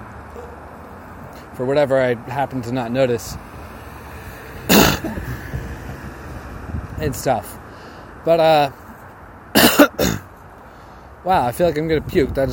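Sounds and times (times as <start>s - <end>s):
speech: 1.6s - 3.5s, 7.0s - 7.6s, 8.2s - 8.8s, 11.2s - 12.5s
hiccups: 4.7s - 5.2s.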